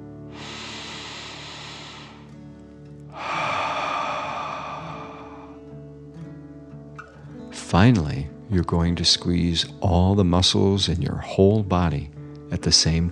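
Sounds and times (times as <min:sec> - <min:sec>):
long slow breaths during a guided relaxation exercise: 0:00.0 - 0:06.1
speech: 0:07.7 - 0:13.1.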